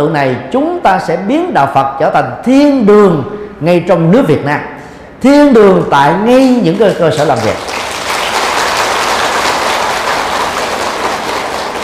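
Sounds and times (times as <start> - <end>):
speech: 0.0 - 7.9
crowd applause: 7.6 - 11.8.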